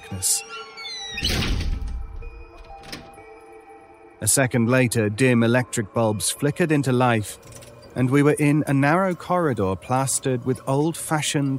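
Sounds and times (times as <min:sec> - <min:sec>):
speech: 0:00.1 - 0:01.6, 0:04.2 - 0:11.5
door shutting with a heavy thunk: 0:00.6 - 0:03.3.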